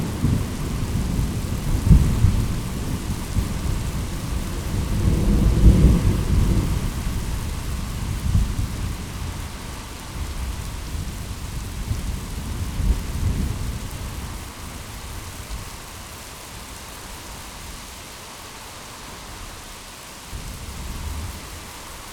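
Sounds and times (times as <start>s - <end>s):
thunder in a thunderstorm: 0.0s - 14.8s.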